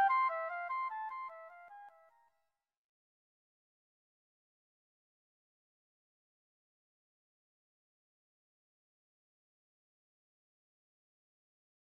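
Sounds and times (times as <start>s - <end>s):
flute: 0.0s - 2.1s.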